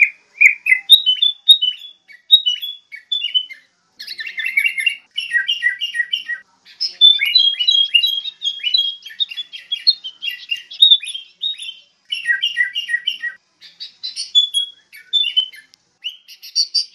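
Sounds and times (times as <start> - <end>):
sooty-headed bulbul calling: 0.0 - 16.9.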